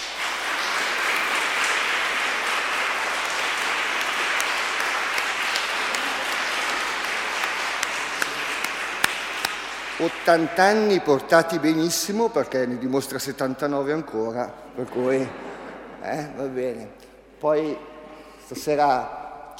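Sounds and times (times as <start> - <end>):
audience applause: 0.0 - 11.0
speech: 10.0 - 17.9, 18.5 - 19.5.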